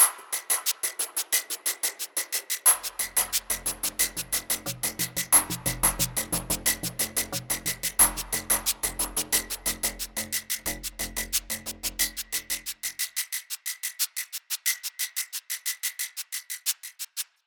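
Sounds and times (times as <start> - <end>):
hectic background rhythm: 0.2 - 17.2.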